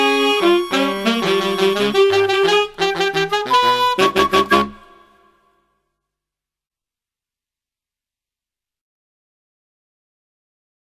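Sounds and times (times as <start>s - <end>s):
TV theme jazz band: 0.0s - 5.3s
saxophone: 0.0s - 5.6s.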